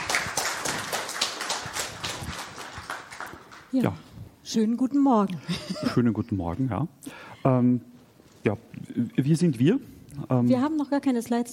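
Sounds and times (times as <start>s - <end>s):
audience applause: 0.0s - 3.7s
speech: 3.7s - 11.5s.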